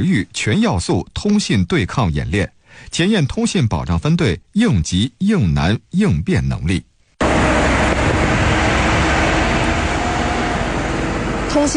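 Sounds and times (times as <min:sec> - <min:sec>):
speech: 0:00.0 - 0:06.9, 0:11.6 - 0:11.7
military vehicles driving out of a camp: 0:07.2 - 0:11.7.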